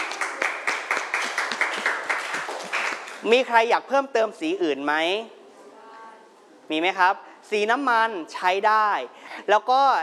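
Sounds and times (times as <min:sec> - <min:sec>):
classroom clapping for a student: 0:00.0 - 0:03.3
speech: 0:03.2 - 0:05.4, 0:06.7 - 0:10.0.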